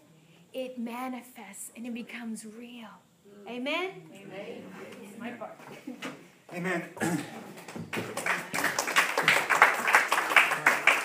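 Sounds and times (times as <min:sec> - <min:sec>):
speech: 0:00.6 - 0:08.1
audience clapping: 0:07.5 - 0:11.0.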